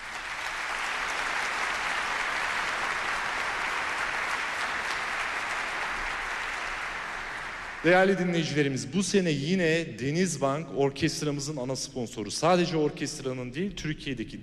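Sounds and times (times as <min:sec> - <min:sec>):
audience applause: 0:00.0 - 0:08.4
speech: 0:07.8 - 0:14.4.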